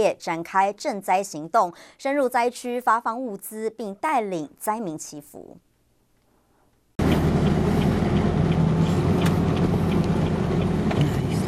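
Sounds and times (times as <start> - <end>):
speech: 0.0 - 5.7
heavy military truck driving over rough damaged road: 7.0 - 11.4.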